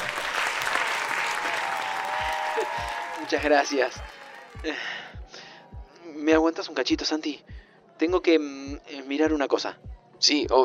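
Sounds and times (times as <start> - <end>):
wedding guests applauding: 0.0 - 5.3
speech: 3.3 - 5.0, 6.2 - 10.6.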